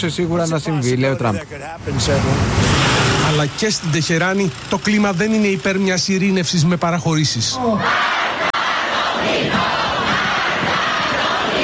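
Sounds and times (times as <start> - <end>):
speech: 0.0 - 8.2
crowd chanting at a rally in square: 7.6 - 11.6.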